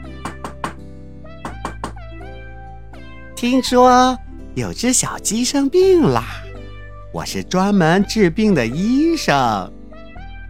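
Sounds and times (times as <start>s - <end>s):
knocking on a door: 0.0s - 0.8s, 1.4s - 2.0s
steady music: 0.0s - 10.4s
speech: 3.4s - 6.4s, 7.1s - 9.8s.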